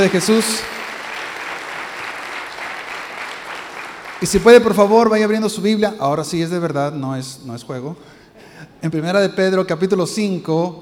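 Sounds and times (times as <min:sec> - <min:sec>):
speech: 0:00.0 - 0:00.8, 0:04.2 - 0:10.7
loud audience applause: 0:00.0 - 0:04.8.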